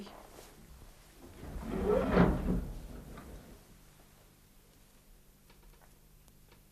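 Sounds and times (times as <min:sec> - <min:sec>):
window being opened, radio play sound effect: 0:01.2 - 0:03.8.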